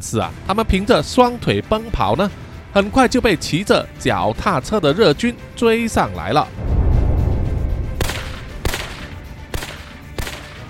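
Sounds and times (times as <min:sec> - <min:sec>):
speech: 0:00.0 - 0:06.6
low steady rumble: 0:06.5 - 0:09.4
gunshots: 0:07.9 - 0:09.8.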